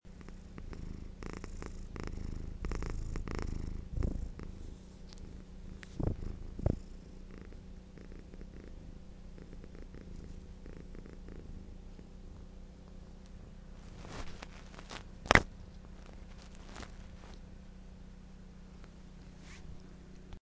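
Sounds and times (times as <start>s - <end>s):
cat purring: 0.1s - 17.5s.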